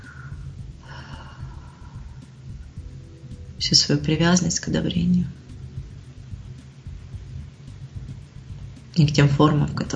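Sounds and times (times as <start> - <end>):
deep breath in and full exhale: 0.0 - 2.4
low steady hum: 0.0 - 9.9
speech: 3.6 - 5.4, 9.0 - 9.9.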